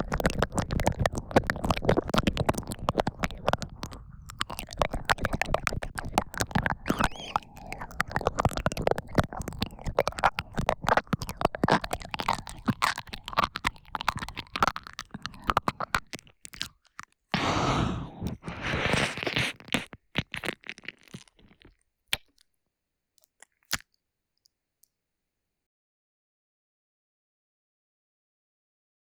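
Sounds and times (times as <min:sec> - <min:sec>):
ear licking on the right side: 0:00.0 - 0:16.7, 0:17.4 - 0:22.4.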